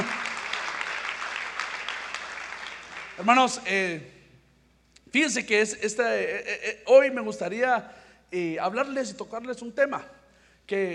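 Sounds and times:
audience applauding: 0.0 - 3.4
speech: 3.2 - 4.2, 5.1 - 10.9.

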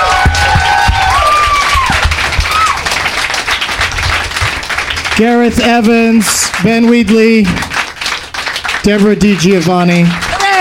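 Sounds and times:
audience applause: 0.0 - 10.5
speech: 5.2 - 7.6, 8.8 - 10.2.

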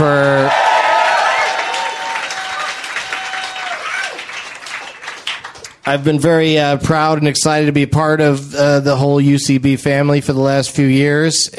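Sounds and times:
speech: 0.0 - 0.2, 5.9 - 11.5
person cheering or shouting: 0.0 - 4.3
audience applause: 0.3 - 6.0.

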